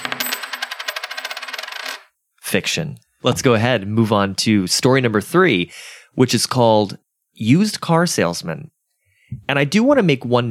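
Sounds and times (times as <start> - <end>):
coin being flipped and landing: 0.0 - 2.1
speech: 2.5 - 10.4.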